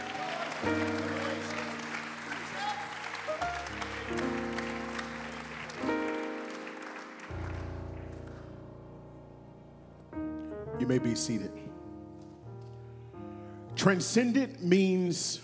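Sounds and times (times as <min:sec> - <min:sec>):
audience hand clap applause: 0:00.0 - 0:08.9
speech: 0:10.9 - 0:11.7, 0:13.8 - 0:15.4.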